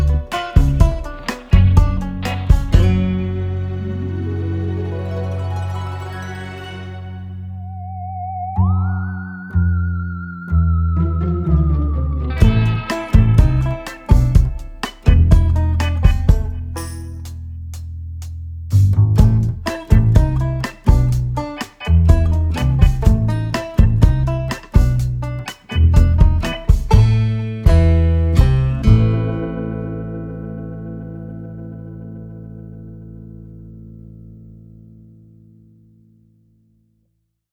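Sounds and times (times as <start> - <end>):
comedy music score: 0.0 - 17.3, 19.2 - 31.0.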